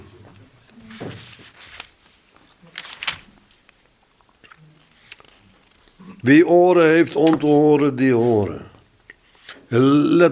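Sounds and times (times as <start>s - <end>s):
page turning: 0.7s - 6.0s
speech: 6.2s - 8.7s, 9.7s - 10.2s.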